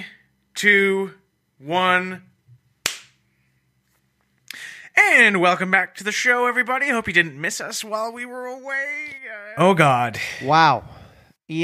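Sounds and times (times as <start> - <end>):
speech: 0.6 - 2.3, 5.0 - 11.6
single hand clap for sync: 2.8 - 3.2.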